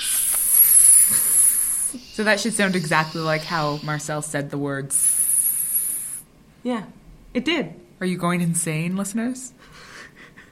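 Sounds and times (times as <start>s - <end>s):
voice imitating Parseltongue with snake-like hissing: 0.0s - 4.3s, 4.9s - 6.2s
speech: 1.9s - 5.2s, 6.6s - 9.9s.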